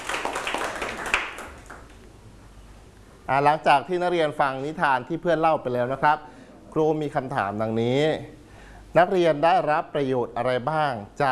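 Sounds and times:
class of students clapping for a classmate: 0:00.0 - 0:02.1
speech: 0:03.3 - 0:11.2.

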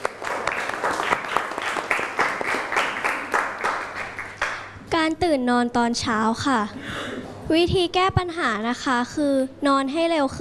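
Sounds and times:
classroom applause: 0:00.0 - 0:04.7
speech: 0:05.1 - 0:10.3.

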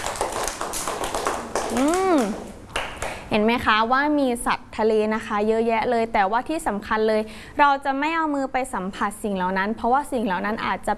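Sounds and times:
hand clapping: 0:00.0 - 0:03.3
speech: 0:01.7 - 0:02.4, 0:03.3 - 0:10.9.

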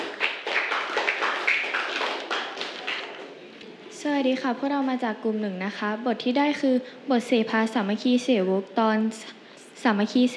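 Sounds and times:
classroom students clapping: 0:00.0 - 0:03.3
speech: 0:04.0 - 0:10.3.

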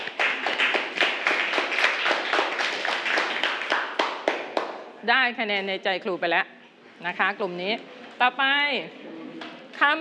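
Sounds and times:
children clapping for a group: 0:00.0 - 0:04.8
speech: 0:05.0 - 0:09.2, 0:09.8 - 0:10.0.

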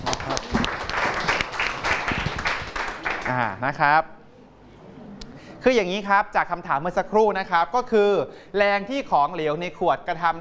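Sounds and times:
students clapping: 0:00.0 - 0:03.6
speech: 0:03.3 - 0:04.2, 0:05.6 - 0:10.3.

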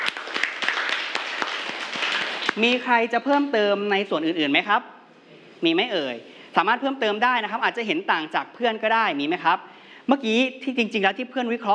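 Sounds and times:
room full of people applauding: 0:00.0 - 0:02.8
speech: 0:02.6 - 0:04.9, 0:05.6 - 0:11.7.

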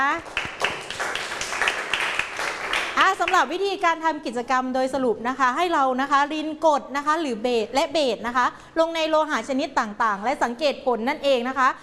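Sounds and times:
speech: 0:00.0 - 0:00.4, 0:03.1 - 0:11.8
classroom applause: 0:00.0 - 0:03.6.

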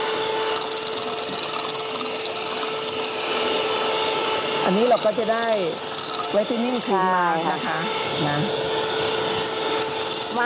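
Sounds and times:
kitchen blender mixing homemade whitening cream: 0:00.0 - 0:10.4
speech: 0:04.7 - 0:08.7.

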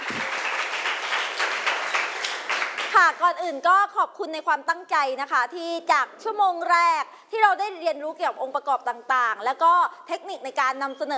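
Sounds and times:
classroom applause: 0:00.0 - 0:03.2
speech: 0:03.1 - 0:11.1.

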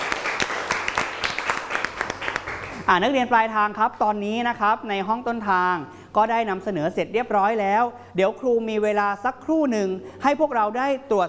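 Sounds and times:
classroom applause: 0:00.0 - 0:02.9
speech: 0:02.9 - 0:11.2.

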